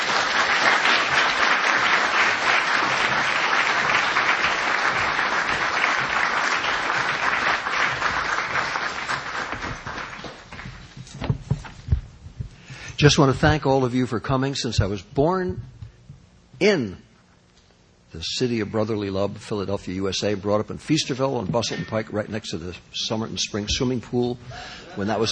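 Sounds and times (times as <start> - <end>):
audience applause: 0.0 - 10.9
speech: 13.0 - 15.8, 16.6 - 17.1, 18.1 - 25.3.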